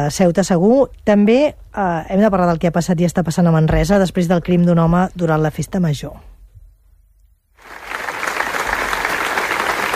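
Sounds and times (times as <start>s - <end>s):
speech: 0.0s - 6.3s
crowd applause at a memorial gathering in Manresa: 7.6s - 9.9s.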